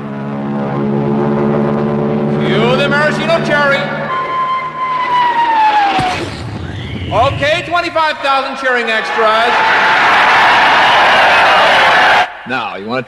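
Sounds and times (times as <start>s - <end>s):
Royal Canadian Air Force planes flying overhead: 0.0s - 6.1s
speech: 7.1s - 11.6s, 12.5s - 13.0s.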